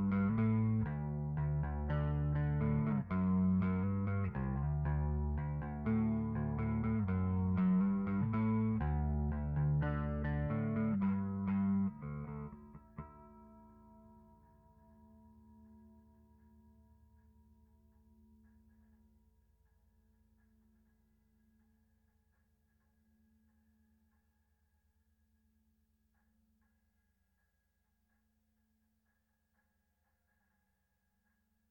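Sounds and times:
bass: 0:00.0 - 0:24.8.

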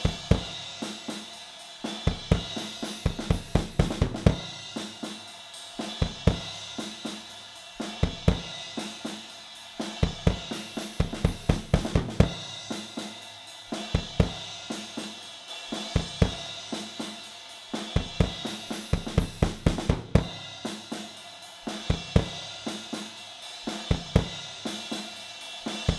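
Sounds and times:
drums recorded with AKG414 microphone: 0:00.0 - 0:25.9.

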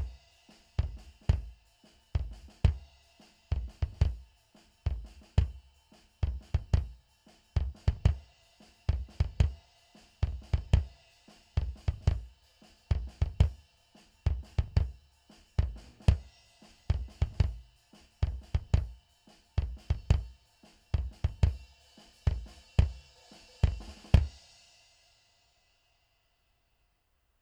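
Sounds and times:
mono bass drum: 0:00.0 - 0:00.2, 0:00.8 - 0:02.9, 0:03.5 - 0:04.3, 0:04.9 - 0:08.3, 0:08.9 - 0:09.6, 0:10.2 - 0:10.9, 0:11.6 - 0:12.3, 0:12.9 - 0:13.6, 0:14.3 - 0:15.0, 0:15.6 - 0:16.3, 0:16.9 - 0:19.0, 0:19.6 - 0:20.4, 0:21.0 - 0:23.0, 0:23.6 - 0:24.4.

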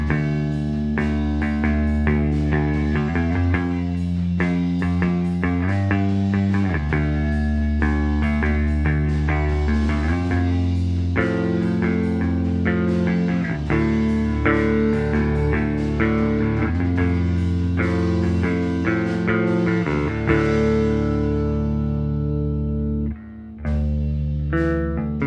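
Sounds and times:
M201 mono bass: 0:00.0 - 0:25.2.

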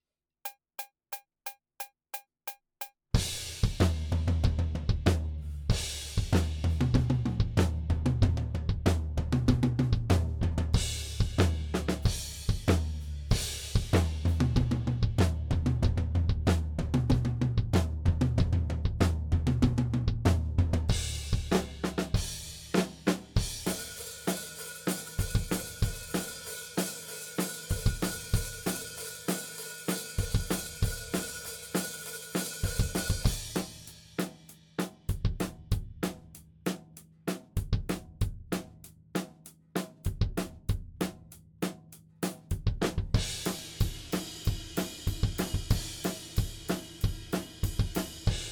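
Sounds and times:
drums: 0:02.8 - 0:48.5.

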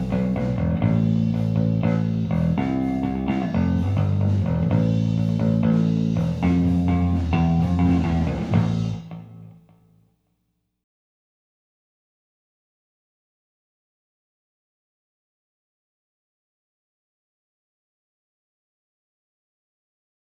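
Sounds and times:
bass recorded with SM57 microphone: 0:00.0 - 0:09.9.

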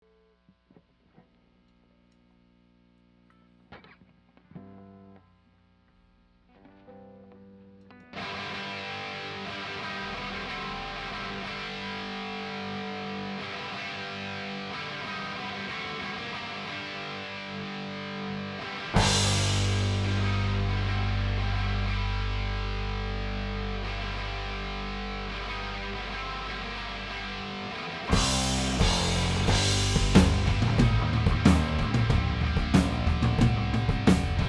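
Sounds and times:
drum stems: 0:08.2 - 0:34.4.

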